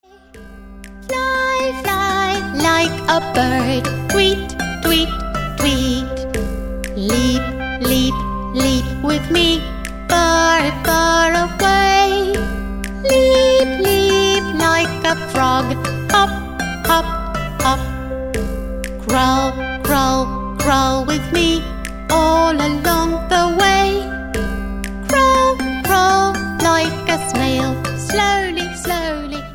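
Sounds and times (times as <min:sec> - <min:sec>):
spring animals children's action song: 0:00.0 - 0:29.5.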